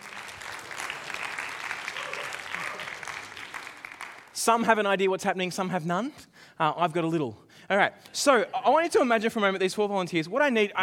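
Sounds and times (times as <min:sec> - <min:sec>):
audience clapping: 0:00.0 - 0:04.8
speech: 0:04.4 - 0:10.8.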